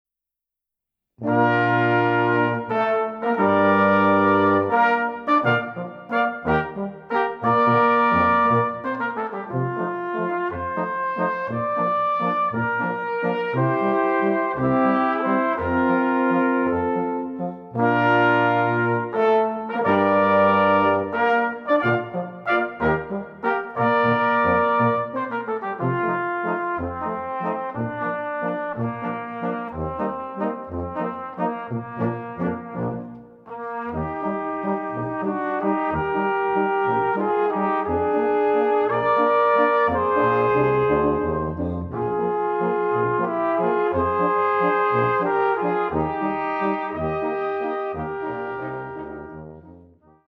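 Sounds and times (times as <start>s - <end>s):
waltz: 1.3s - 49.9s.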